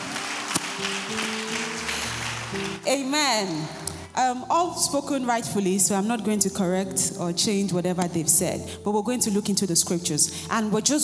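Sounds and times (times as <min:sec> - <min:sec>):
round of applause: 0:00.0 - 0:02.9
speech: 0:02.9 - 0:11.0.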